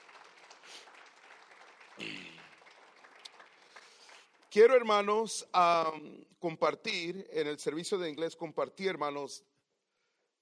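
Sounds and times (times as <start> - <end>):
audience applauding: 0.0 - 4.8
speech: 4.5 - 9.5.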